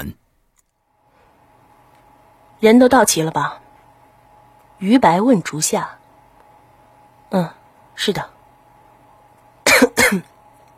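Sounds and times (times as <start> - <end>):
speech: 0.0 - 0.2, 2.6 - 3.6, 4.8 - 6.0, 7.3 - 8.3, 10.1 - 10.3
person coughing: 9.6 - 10.4.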